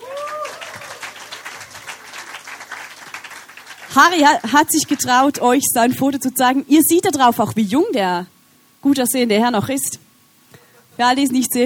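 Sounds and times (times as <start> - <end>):
audience applause: 0.0 - 5.1
speech: 3.9 - 10.1, 11.0 - 11.6.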